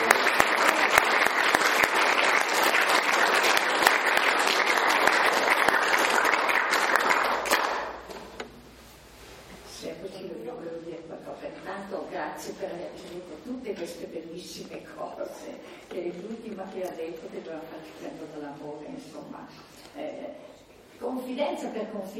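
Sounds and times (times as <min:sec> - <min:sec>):
audience applause: 0:00.0 - 0:08.1
person speaking: 0:09.6 - 0:22.1.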